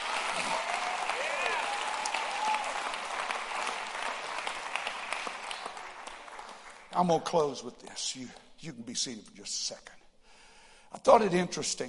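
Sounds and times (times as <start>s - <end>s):
audience clapping hands: 0.0s - 8.5s
faint voices and whoops: 0.4s - 2.9s
speech: 7.0s - 10.0s, 10.9s - 11.8s.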